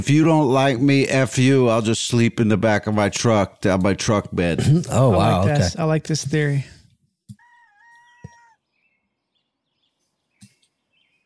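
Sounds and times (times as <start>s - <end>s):
speech: 0.0s - 6.8s
rooster crowing: 7.4s - 8.6s.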